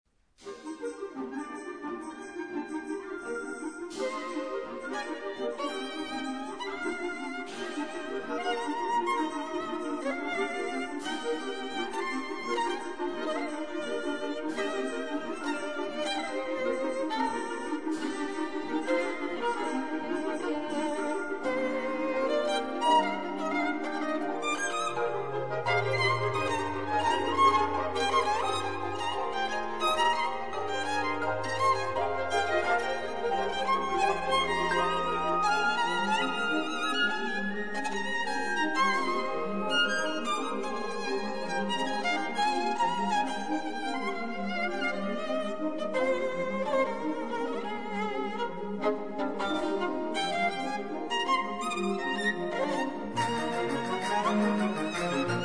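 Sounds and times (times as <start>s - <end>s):
Chinese concerto: 0.4s - 55.4s.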